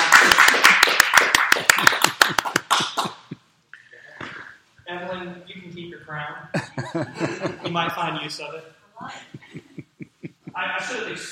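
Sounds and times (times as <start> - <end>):
audience clapping at the close of a reader's theater performance: 0.0 - 3.3
laughter: 1.8 - 3.4, 6.5 - 8.4, 9.0 - 11.3
speech: 6.1 - 9.4, 10.6 - 11.3.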